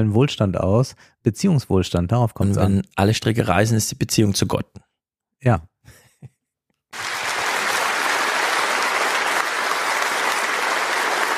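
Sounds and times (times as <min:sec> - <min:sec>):
speech: 0:00.0 - 0:06.0
loud sustained applause from a crowd: 0:07.0 - 0:11.3.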